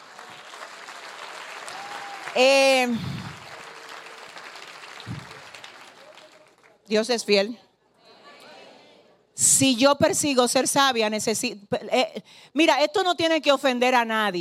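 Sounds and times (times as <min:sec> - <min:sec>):
loud cheer: 0:00.0 - 0:06.4
dense applause: 0:00.0 - 0:06.8
speech: 0:02.3 - 0:03.2, 0:06.9 - 0:07.6, 0:09.6 - 0:14.3.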